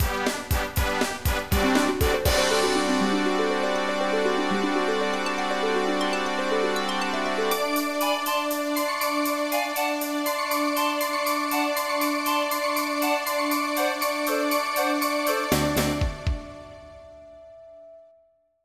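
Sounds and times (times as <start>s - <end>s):
MIDI music: 0.0s - 17.9s.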